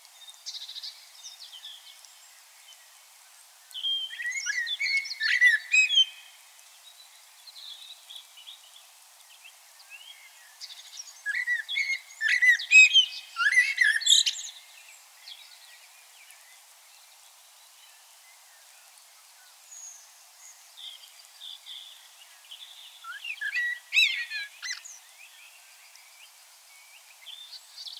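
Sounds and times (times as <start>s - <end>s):
common blackbird singing: 3.8s - 6.3s, 9.9s - 14.6s, 20.8s - 25.6s.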